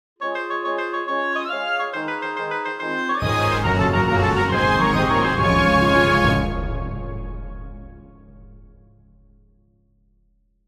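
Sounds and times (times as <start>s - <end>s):
fanfare: 0.2s - 8.4s.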